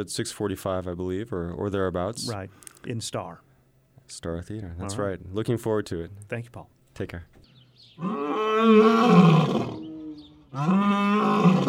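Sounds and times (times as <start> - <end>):
speech: 0.0 - 3.5, 4.1 - 9.8, 10.5 - 11.6
African lions roaring at Turpentine Creek Wildlife Refuge: 8.0 - 11.6.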